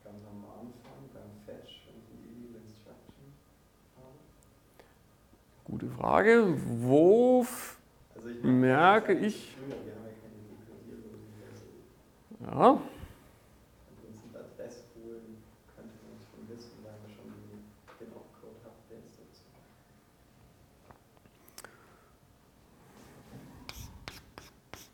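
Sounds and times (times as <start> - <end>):
speech: 6.0 - 7.6, 8.5 - 9.9, 12.4 - 12.9
writing on a board during a lecture: 23.6 - 24.9.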